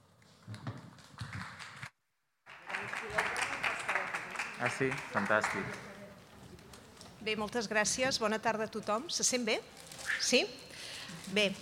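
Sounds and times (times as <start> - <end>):
audience applause: 2.5 - 5.9
speech: 4.6 - 5.9, 7.2 - 11.6.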